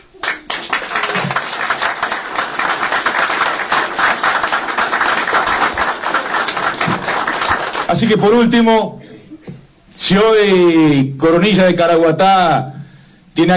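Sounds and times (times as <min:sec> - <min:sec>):
crowd applause: 0:00.0 - 0:08.2
speech: 0:08.0 - 0:09.0, 0:10.0 - 0:12.8, 0:13.4 - 0:13.5.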